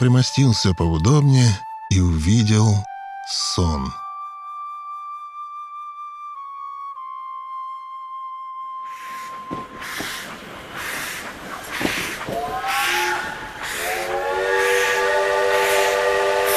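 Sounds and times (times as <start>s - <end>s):
speech: 0.0s - 4.0s
train: 8.9s - 16.5s
steam locomotive whistle: 12.4s - 16.5s.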